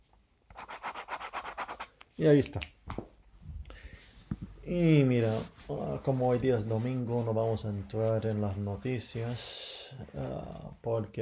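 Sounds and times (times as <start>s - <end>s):
pen scratching across paper, crossing out: 0.6s - 1.9s
speech: 2.2s - 2.8s, 4.7s - 11.1s.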